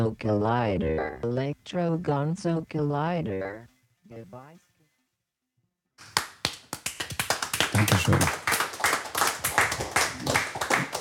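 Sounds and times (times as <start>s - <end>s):
speech: 0.0s - 4.7s, 7.7s - 8.5s
applause from a live audience: 6.0s - 11.0s.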